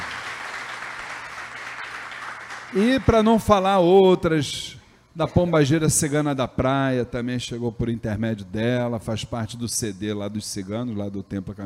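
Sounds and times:
applause: 0:00.0 - 0:03.5
speech: 0:02.7 - 0:11.6.

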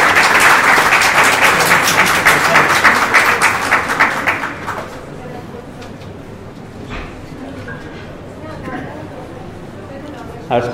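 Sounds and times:
audience applause for a professor at a lecture on Stoicism: 0:00.0 - 0:05.1
speech: 0:10.5 - 0:10.7.

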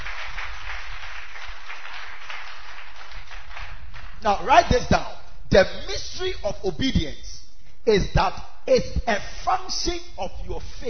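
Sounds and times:
audience clapping hands: 0:00.0 - 0:05.0
speech: 0:04.2 - 0:10.8.

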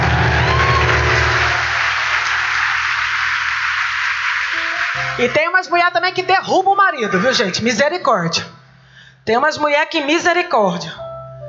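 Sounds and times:
scattered whoops: 0:00.0 - 0:02.5
audience of women clapping and cheering: 0:00.0 - 0:05.5
speech: 0:05.2 - 0:08.6, 0:09.2 - 0:11.0.

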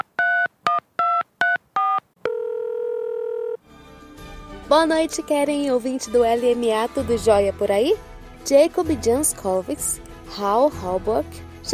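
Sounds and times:
touch-tone telephone dialing beeps: 0:00.0 - 0:03.6
speech: 0:04.7 - 0:11.7.

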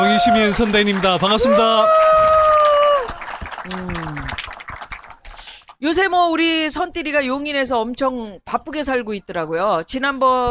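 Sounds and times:
speech: 0:00.0 - 0:02.4, 0:03.7 - 0:04.1, 0:05.8 - 0:10.4
audience clapping: 0:00.0 - 0:05.8.

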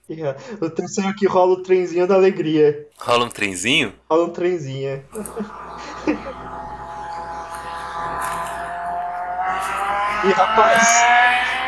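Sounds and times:
speech: 0:00.1 - 0:06.3, 0:10.2 - 0:11.5
car engine revving and passing by: 0:05.1 - 0:11.6.

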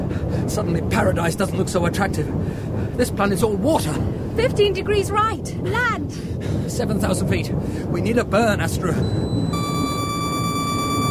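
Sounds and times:
speech: 0:00.5 - 0:09.3
electronic low fuel warning tone: 0:09.0 - 0:11.1.

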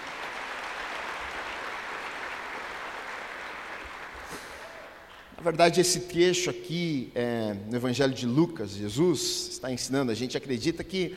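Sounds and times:
audience applauding: 0:00.0 - 0:05.3
speech: 0:05.4 - 0:11.1.

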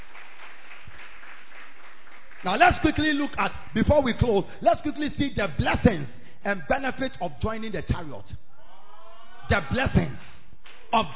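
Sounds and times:
audience clapping hands: 0:00.0 - 0:04.1, 0:10.1 - 0:10.9
speech: 0:02.4 - 0:08.5, 0:09.5 - 0:10.3, 0:10.9 - 0:11.1.

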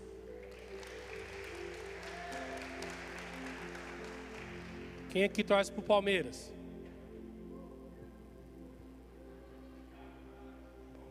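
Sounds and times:
audience applause: 0:00.0 - 0:05.2
speech: 0:05.2 - 0:06.6.

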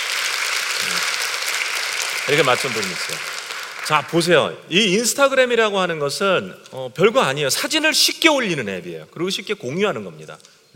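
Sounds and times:
audience applause: 0:00.0 - 0:04.4
speech: 0:02.3 - 0:10.7.

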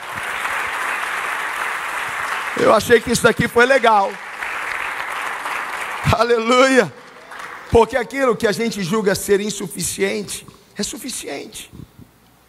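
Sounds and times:
audience applause: 0:00.0 - 0:08.3
speech: 0:02.6 - 0:04.2, 0:06.1 - 0:07.0, 0:07.7 - 0:11.8.

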